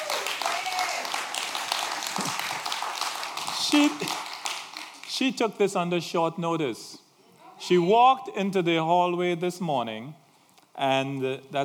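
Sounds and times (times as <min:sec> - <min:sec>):
audience applause: 0:00.0 - 0:05.2
speech: 0:03.7 - 0:04.2, 0:05.2 - 0:07.0, 0:07.6 - 0:10.2, 0:10.8 - 0:11.6.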